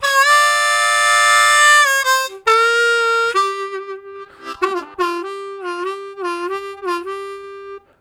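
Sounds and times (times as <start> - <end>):
harmonica with hard start: 0.0 - 7.9.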